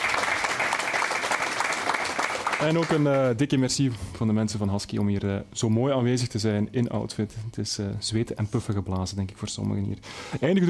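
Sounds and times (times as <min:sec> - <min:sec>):
audience applause: 0:00.0 - 0:03.4
speech: 0:02.6 - 0:10.6.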